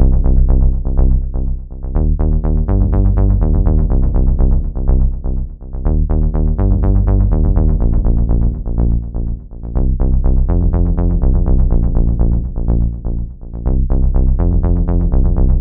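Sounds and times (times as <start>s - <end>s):
arcade bass: 0.0s - 15.5s.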